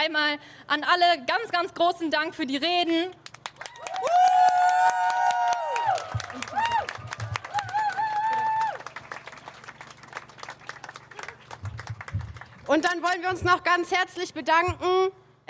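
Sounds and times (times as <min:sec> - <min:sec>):
speech: 0:00.0 - 0:03.3, 0:04.0 - 0:04.3, 0:12.7 - 0:15.4
loud applause from an audience: 0:03.5 - 0:12.7.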